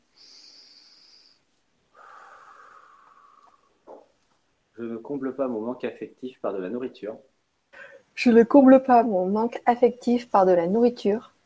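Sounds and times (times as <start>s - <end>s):
slow deep breath: 0.0s - 3.9s, 7.7s - 8.1s
speech: 4.8s - 7.3s, 8.2s - 11.3s.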